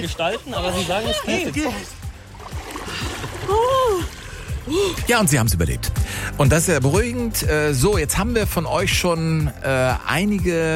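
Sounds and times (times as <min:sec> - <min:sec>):
laughter: 0:00.0 - 0:02.0
speech: 0:00.0 - 0:02.0, 0:03.5 - 0:10.7
splashing of two people jumping into ice-cold water at an outdoor bath: 0:00.5 - 0:05.6
person crying out: 0:03.4 - 0:05.0.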